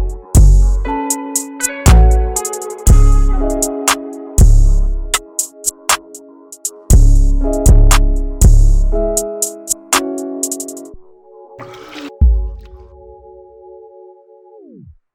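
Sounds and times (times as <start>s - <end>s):
trap beat: 1.4s - 10.9s.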